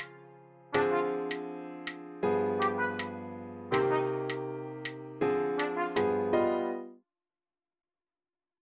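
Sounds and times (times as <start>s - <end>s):
rhythm with accents on 1 and 3: 0.0s - 0.2s, 0.8s - 6.5s.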